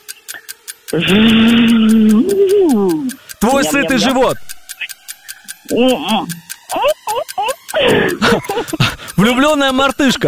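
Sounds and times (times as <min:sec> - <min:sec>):
regular ticking: 0:00.0 - 0:10.2
soft clicks: 0:00.0 - 0:10.2
speech: 0:00.9 - 0:04.5, 0:05.7 - 0:10.2
voice imitating a buzzing fly: 0:01.0 - 0:04.3, 0:05.7 - 0:08.6
laughter: 0:03.5 - 0:05.0, 0:05.8 - 0:10.2.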